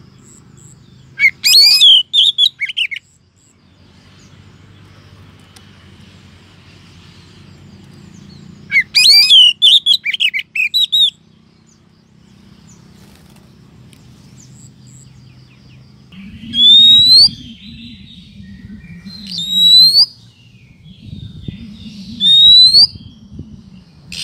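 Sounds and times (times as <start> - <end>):
Oriental magpie-robin rising whistle: 1.2 - 3.0, 8.7 - 11.2, 16.2 - 24.2.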